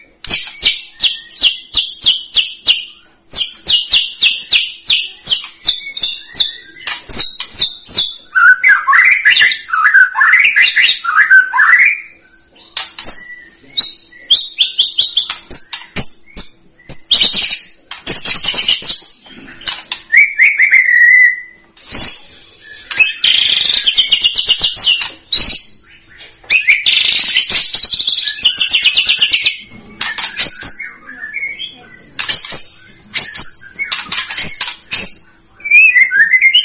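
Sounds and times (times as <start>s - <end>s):
White-rumped shama singing strongly: 0.0s - 36.6s.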